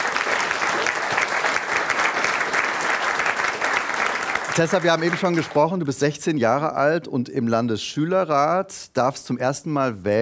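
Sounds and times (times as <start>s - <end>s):
audience applause: 0.0s - 5.8s
speech: 4.6s - 10.2s.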